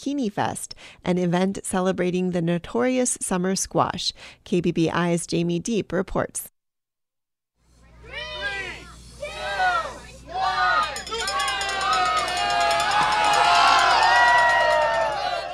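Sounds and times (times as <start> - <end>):
speech: 0.0 - 6.5
crowd cheering and yelling at children's zucchini races: 8.1 - 15.5.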